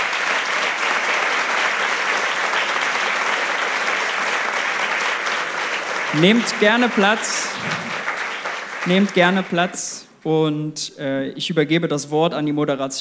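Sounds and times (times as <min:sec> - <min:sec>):
crowd applauding: 0:00.0 - 0:10.0
speech: 0:06.1 - 0:07.9, 0:08.8 - 0:12.9.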